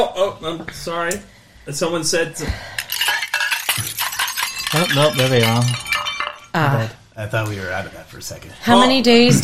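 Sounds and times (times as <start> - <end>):
speech: 0.0 - 2.8, 4.7 - 5.9, 6.6 - 9.4
dishes clinking and clattering: 2.7 - 6.9.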